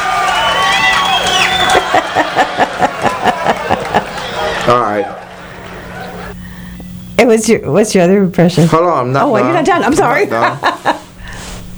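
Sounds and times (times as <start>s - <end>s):
audience cheering and whooping: 0.0s - 6.4s
steady rhythmic clapping: 0.0s - 7.0s
laughter: 0.8s - 6.4s, 9.2s - 11.2s
speech: 4.7s - 5.2s, 7.2s - 10.7s.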